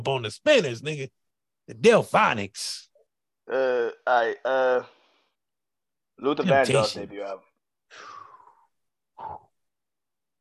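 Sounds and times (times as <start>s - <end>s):
speech: 0.0s - 2.9s, 3.5s - 5.0s, 6.2s - 8.1s
deep breaths taken to help recall a memory: 7.9s - 9.6s.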